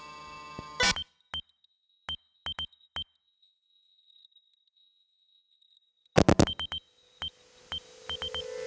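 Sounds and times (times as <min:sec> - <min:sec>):
morse code beeps: 0:00.6 - 0:01.1, 0:02.1 - 0:03.1, 0:06.2 - 0:06.8, 0:07.8 - 0:08.5.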